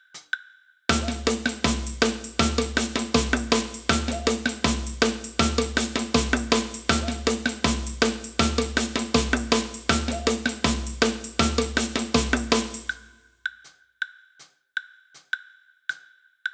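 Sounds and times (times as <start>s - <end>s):
samba block: 0.9s - 13.2s.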